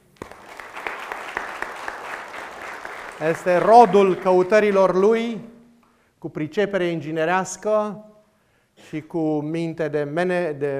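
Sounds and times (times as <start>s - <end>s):
room of people clapping: 0.0s - 5.3s
speech: 3.2s - 5.5s, 6.2s - 8.1s, 8.8s - 10.7s.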